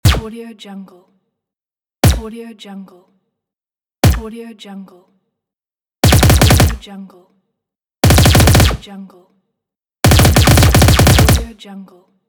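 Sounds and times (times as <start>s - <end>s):
space gun firing: 0.0s - 0.3s, 6.0s - 6.8s, 8.0s - 8.8s, 10.0s - 11.5s.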